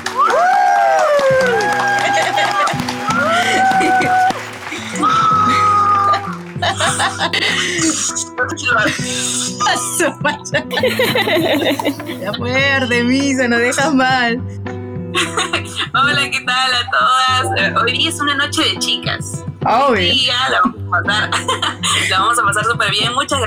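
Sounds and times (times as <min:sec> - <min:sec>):
audience cheering: 0:00.0 - 0:06.8
audience applause: 0:00.0 - 0:08.0
laughter: 0:00.0 - 0:12.5, 0:15.1 - 0:18.1, 0:20.5 - 0:22.9
speech: 0:08.0 - 0:23.4.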